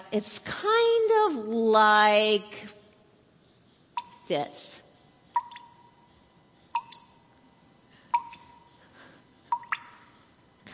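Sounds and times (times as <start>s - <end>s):
speech: 0.1s - 2.8s, 4.3s - 4.8s
steady water drip: 4.0s - 4.3s, 5.3s - 6.1s, 6.7s - 7.3s, 8.1s - 8.8s, 9.5s - 10.2s.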